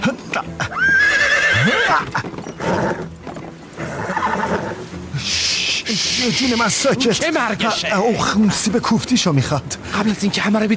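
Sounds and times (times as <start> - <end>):
hooves shuffling: 0.0 - 10.7
speech: 0.4 - 0.9, 1.6 - 3.1, 6.0 - 10.7
war horse whinnying: 0.5 - 6.6
horse snorting: 1.0 - 4.9.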